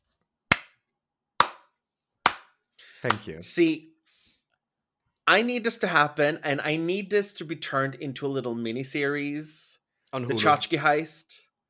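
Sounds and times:
hand clapping: 0:00.5 - 0:00.8, 0:01.4 - 0:03.4
speech: 0:03.0 - 0:03.9, 0:05.3 - 0:11.5.

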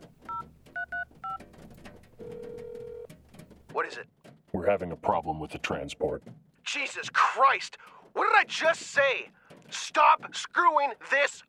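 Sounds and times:
telephone number being dialed: 0:00.3 - 0:01.4, 0:02.2 - 0:03.1
speech: 0:03.8 - 0:11.4.

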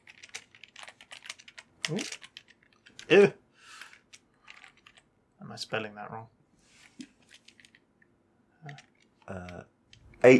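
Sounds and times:
typing a YouTube search on a computer keyboard: 0:00.0 - 0:03.2, 0:03.8 - 0:05.1, 0:07.3 - 0:07.8, 0:08.6 - 0:10.0
speech: 0:01.9 - 0:02.2, 0:03.1 - 0:03.4, 0:05.6 - 0:06.4, 0:08.6 - 0:10.3.

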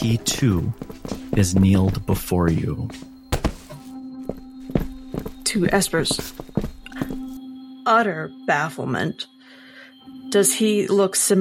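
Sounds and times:
speech: 0:00.0 - 0:03.1, 0:05.5 - 0:06.5, 0:07.9 - 0:09.3, 0:10.3 - 0:11.4
footsteps approaching: 0:00.3 - 0:03.9.

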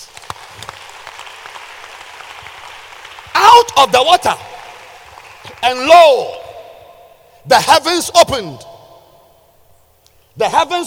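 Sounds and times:
congregation clapping during a church sermon: 0:00.0 - 0:06.6
speech: 0:03.6 - 0:04.5, 0:05.6 - 0:06.4, 0:07.4 - 0:08.7, 0:10.4 - 0:10.8.

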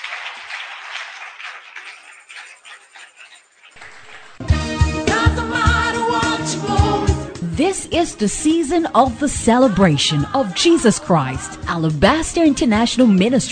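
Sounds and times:
audience clapping hands: 0:00.0 - 0:06.9
speech: 0:07.6 - 0:13.5.

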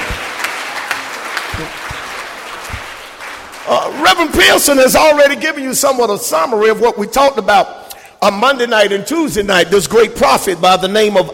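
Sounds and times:
church congregation applauding: 0:00.0 - 0:05.2
speech: 0:01.6 - 0:01.8, 0:03.7 - 0:11.3.

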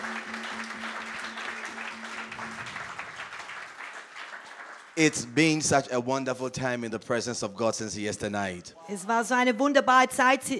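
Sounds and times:
church congregation applauding: 0:00.0 - 0:05.8
speech: 0:05.0 - 0:10.5.

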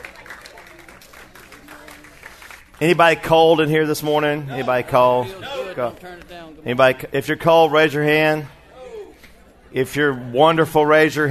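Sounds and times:
church congregation clapping in praise during a worship service: 0:00.0 - 0:03.4
speech: 0:02.8 - 0:08.6, 0:09.7 - 0:11.2.

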